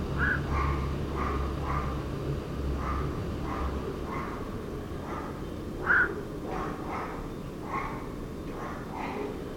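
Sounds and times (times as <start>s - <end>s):
Black-crowned night heron calls: 0.2s - 2.0s, 2.8s - 9.4s.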